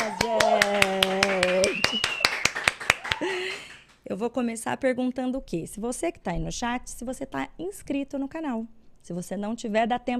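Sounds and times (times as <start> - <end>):
round of applause: 0.0 - 4.0
speech: 4.2 - 10.1.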